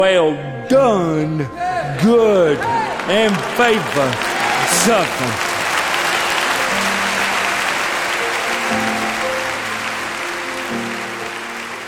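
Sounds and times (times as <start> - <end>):
speech: 0.0 - 5.5
thunderous applause from audience: 2.5 - 11.8.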